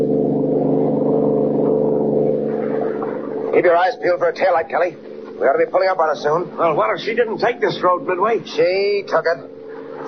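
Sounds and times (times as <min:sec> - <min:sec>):
high-powered car driving fast: 0:00.0 - 0:10.0
speech: 0:03.6 - 0:10.0.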